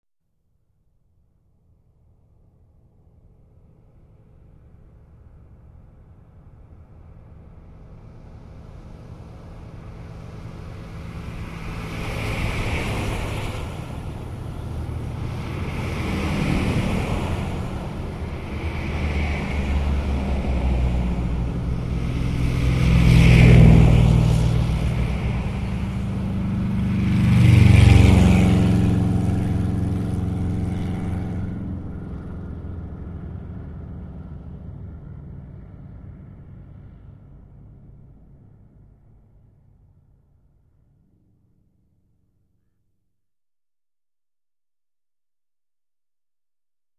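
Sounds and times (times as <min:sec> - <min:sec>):
cars passing by on main road: 0:07.1 - 0:38.8.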